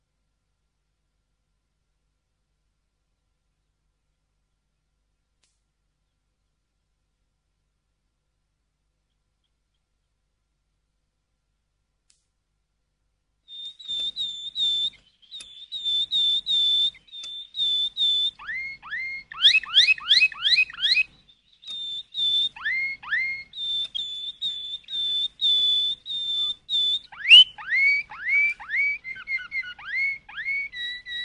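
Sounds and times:
canary whistled song: 13.5s - 31.2s.

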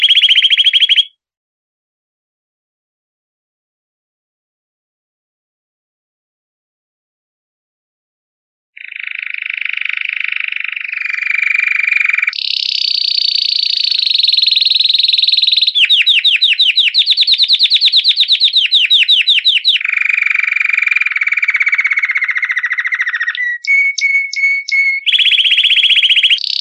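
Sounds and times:
canary song with whistled notes and rapid rolling trill: 0.0s - 1.2s, 8.8s - 26.5s.

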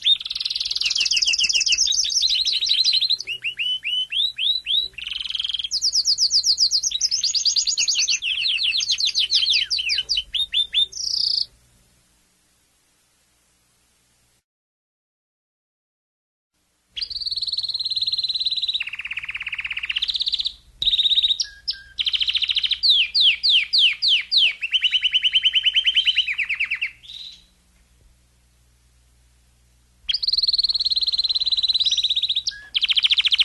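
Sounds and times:
domestic canary singing: 0.0s - 11.6s, 17.0s - 27.6s, 30.1s - 33.4s.

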